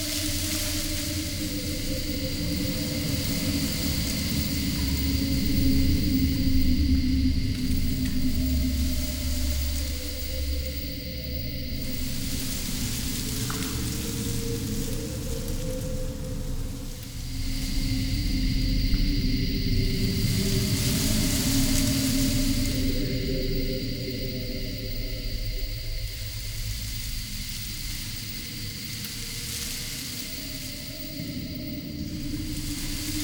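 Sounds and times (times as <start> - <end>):
forest ambience: 0.0 - 33.2.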